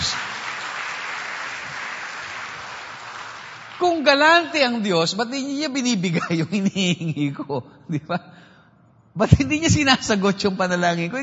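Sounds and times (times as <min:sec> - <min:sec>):
crowd clapping loudly: 0:00.0 - 0:04.6
speech: 0:03.8 - 0:08.4, 0:09.2 - 0:11.2.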